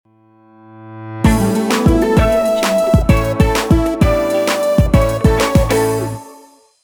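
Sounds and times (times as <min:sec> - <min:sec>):
corporate logo jingle: 0:01.2 - 0:06.6.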